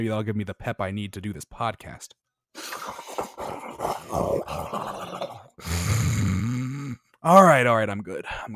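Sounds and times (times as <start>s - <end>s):
speech: 0.0s - 3.0s, 7.2s - 8.5s
person making an exaggerated snorting noise: 2.6s - 7.0s.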